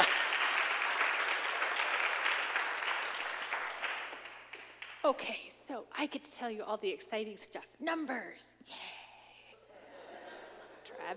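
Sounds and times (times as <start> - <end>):
audience applause at a Vision Sunday gathering: 0.0 - 5.0
speech: 5.1 - 9.0
laughter: 9.7 - 11.1.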